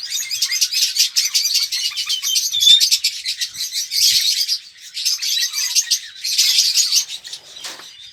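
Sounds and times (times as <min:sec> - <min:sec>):
red-rumped parrot Psephotus haematonotus song of sharp chirping and rattling trills: 0:00.0 - 0:08.1.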